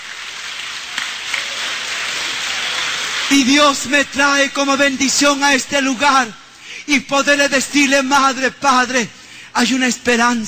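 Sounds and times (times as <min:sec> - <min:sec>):
audience applauding: 0:00.0 - 0:03.9
speech: 0:03.3 - 0:10.4.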